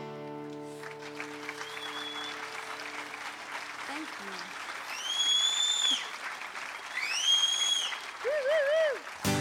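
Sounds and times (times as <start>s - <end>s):
audience whistling: 0.8s - 9.3s.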